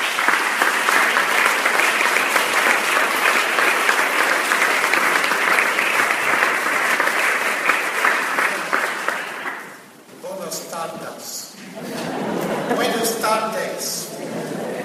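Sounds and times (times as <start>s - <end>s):
audience applause: 0.0s - 9.8s
laughter: 11.6s - 13.4s, 14.0s - 14.8s.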